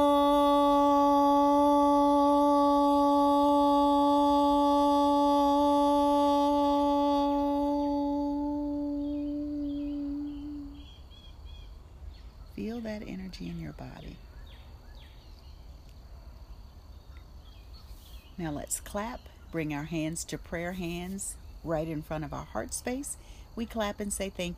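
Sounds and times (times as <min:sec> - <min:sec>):
group chanting the tone OM in unison: 0:00.0 - 0:10.9
speech: 0:13.4 - 0:14.3, 0:18.4 - 0:24.5.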